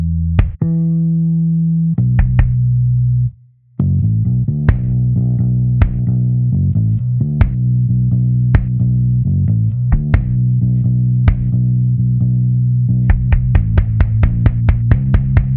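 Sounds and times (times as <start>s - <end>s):
sidechained bass drum and bass: 0.0s - 1.0s, 2.0s - 15.5s.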